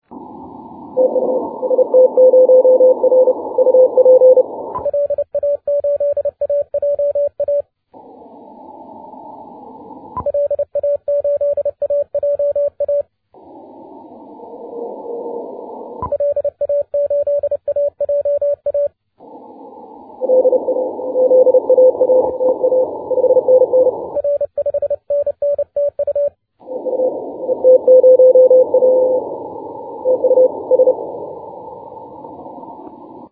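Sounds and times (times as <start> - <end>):
6m CW morse code signal: 1.0 - 7.6, 10.2 - 13.1, 16.0 - 19.0, 20.2 - 29.4, 30.0 - 31.2.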